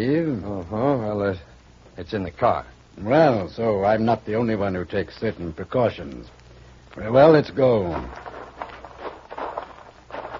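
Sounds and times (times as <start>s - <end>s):
speech: 0.0s - 6.4s, 7.0s - 8.3s
footsteps of people walking carrying suitcases: 7.8s - 10.3s.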